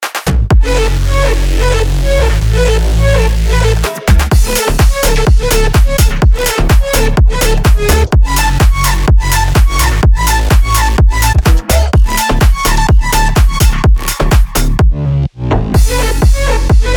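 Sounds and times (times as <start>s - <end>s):
instrumental music at 126 BPM in F sharp minor: 0.0s - 16.9s.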